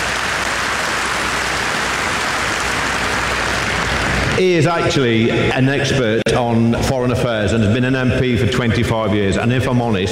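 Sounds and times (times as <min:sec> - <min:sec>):
audience applause: 0:00.0 - 0:05.1
speech: 0:04.4 - 0:10.1.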